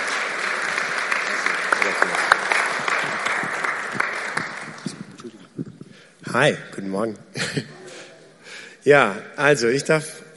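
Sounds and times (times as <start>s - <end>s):
sustained audience applause of many hands clapping: 0.0s - 5.2s
speech: 6.3s - 7.8s, 8.8s - 10.2s.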